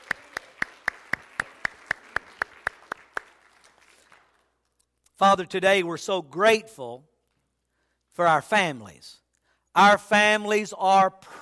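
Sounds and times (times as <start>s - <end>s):
audience clapping together in a steady, even rhythm: 0.0s - 4.7s
speech: 5.2s - 7.1s, 8.2s - 9.2s, 9.8s - 11.4s.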